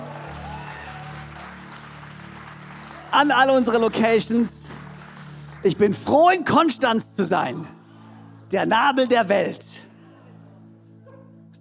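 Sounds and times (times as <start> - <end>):
audience applause: 0.0 - 5.9
speech: 3.1 - 4.6, 5.6 - 7.8, 8.5 - 9.7.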